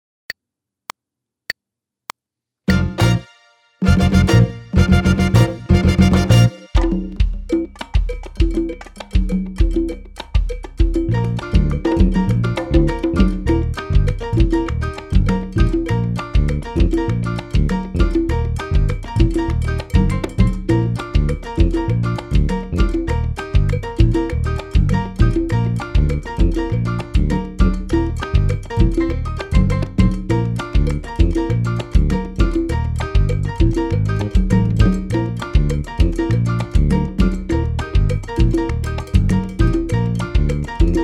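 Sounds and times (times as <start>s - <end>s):
mambo music: 2.7s - 41.0s.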